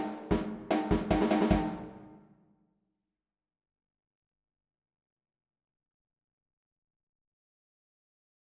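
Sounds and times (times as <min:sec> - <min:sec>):
drum set: 0:00.0 - 0:02.2.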